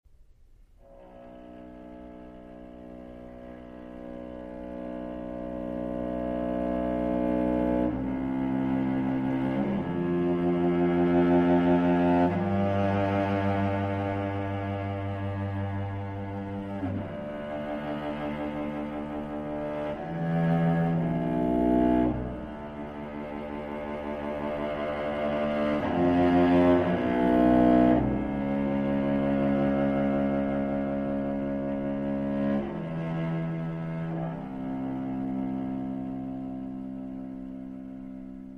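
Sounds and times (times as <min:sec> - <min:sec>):
solo cello sonata adagio: 0:00.7 - 0:38.5.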